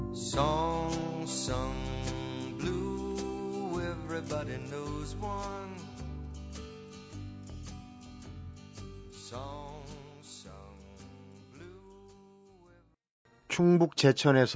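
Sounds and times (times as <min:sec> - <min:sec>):
pop song played on air: 0:00.1 - 0:06.9, 0:08.9 - 0:12.8
speech: 0:13.5 - 0:14.5.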